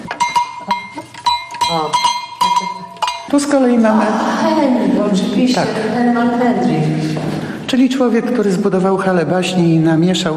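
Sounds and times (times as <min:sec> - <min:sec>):
shepherds' bells ringing: 0:00.0 - 0:04.2
speech: 0:01.7 - 0:02.7, 0:03.3 - 0:10.3.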